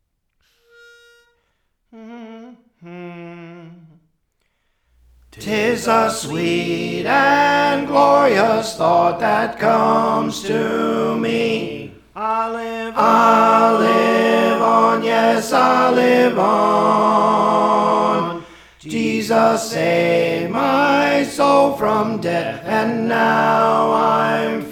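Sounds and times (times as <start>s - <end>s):
tenor singing: 5.3s - 24.7s.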